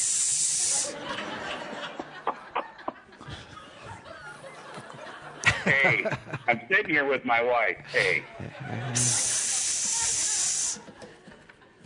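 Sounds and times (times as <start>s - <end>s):
sharp hiss: 0.0s - 1.0s, 8.9s - 10.8s
laughter: 0.6s - 11.8s
speech: 0.9s - 2.0s, 5.7s - 9.2s.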